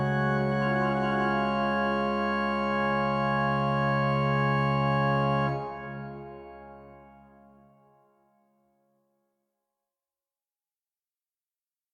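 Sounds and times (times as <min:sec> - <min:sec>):
organ music: 0:00.0 - 0:07.8.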